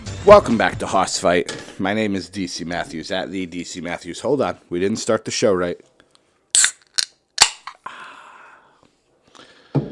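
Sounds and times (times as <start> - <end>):
speech: 0.2 - 5.9
can of key lime LaCroix sparkling water cracked open: 6.5 - 7.8.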